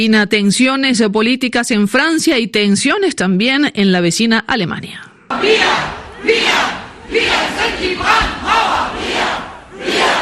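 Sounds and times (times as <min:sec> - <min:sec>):
speech: 0:00.0 - 0:06.5
large crowd of protesters chanting: 0:05.3 - 0:10.2.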